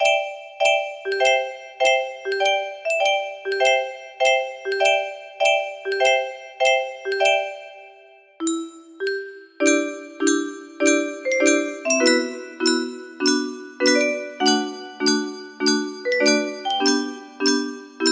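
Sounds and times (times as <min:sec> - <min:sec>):
music box melody: 0:00.0 - 0:18.1.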